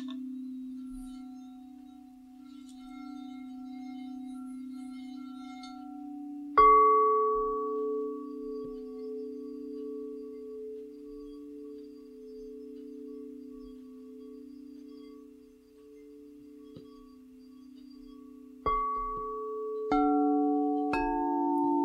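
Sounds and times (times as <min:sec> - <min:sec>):
singing bowls ringing in a sound bath: 0:00.0 - 0:21.8.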